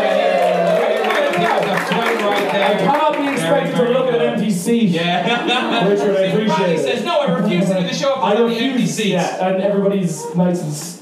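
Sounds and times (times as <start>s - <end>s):
audience applause for latecomers: 0.0s - 4.0s
speech: 2.5s - 10.9s
laughter: 4.9s - 8.8s.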